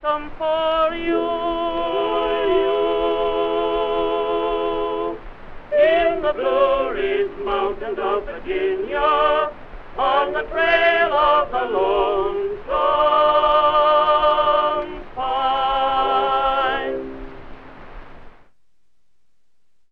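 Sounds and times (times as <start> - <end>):
tenor singing: 0.0 - 17.8
orchestra playing: 16.6 - 17.8.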